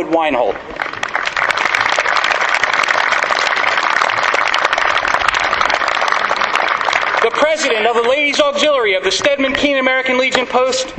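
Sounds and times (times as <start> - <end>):
speech: 0.0 - 0.9, 7.4 - 10.9
crowd applause at parade: 0.7 - 8.6.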